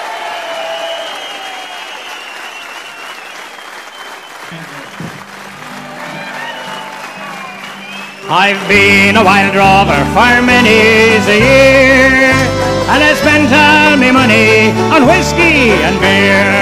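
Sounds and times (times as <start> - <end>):
audience applauding a band returning to the stage: 0.0 - 11.1
speech: 4.5 - 5.2, 8.2 - 16.6.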